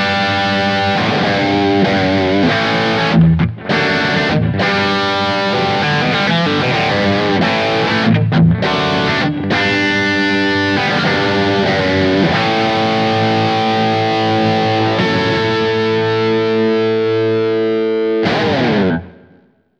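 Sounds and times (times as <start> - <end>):
high-gain electric guitar switching humbucker pickups neck to bridge: 0.0 - 19.7.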